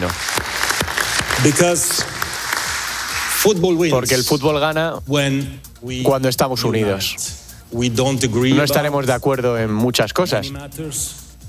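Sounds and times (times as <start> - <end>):
speech: 0.0 - 0.4, 1.4 - 2.1, 3.4 - 11.2
audience ovation: 0.0 - 3.4.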